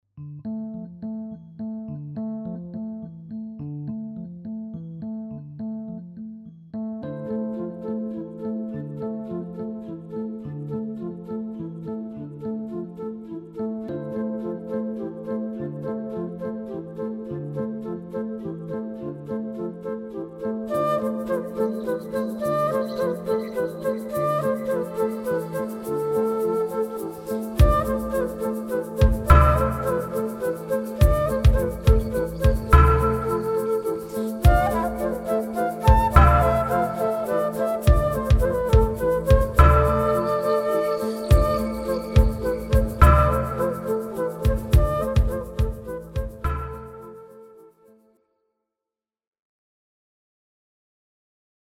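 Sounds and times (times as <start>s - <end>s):
dancing flutes: 13.0s - 47.9s.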